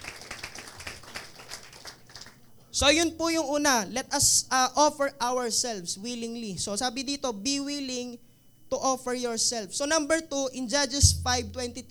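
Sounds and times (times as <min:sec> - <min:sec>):
church congregation clapping for the Lord during a sermon: 0:00.0 - 0:02.5
speech: 0:02.8 - 0:11.8.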